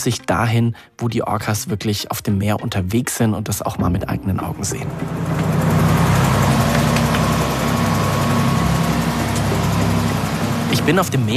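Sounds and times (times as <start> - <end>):
speech: 0.0 - 5.6, 10.9 - 11.3
old ten-metre boat engine running at sea: 3.8 - 11.3.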